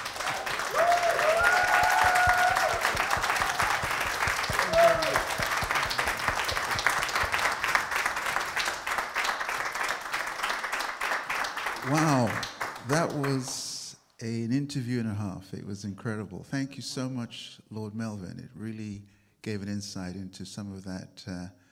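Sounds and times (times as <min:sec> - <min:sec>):
audience applause: 0:00.0 - 0:13.6
cheers and whistles: 0:00.4 - 0:05.5
speech: 0:13.1 - 0:13.6, 0:14.2 - 0:21.6.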